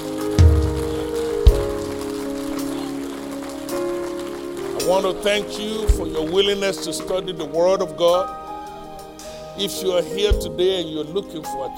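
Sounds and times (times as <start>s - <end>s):
audience clapping: 0.0s - 7.3s
speech: 4.9s - 8.4s, 9.6s - 11.7s.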